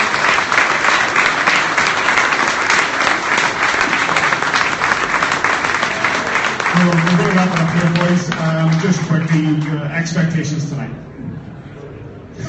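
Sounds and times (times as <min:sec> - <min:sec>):
audience applause: 0:00.0 - 0:09.8
speech: 0:06.8 - 0:11.1.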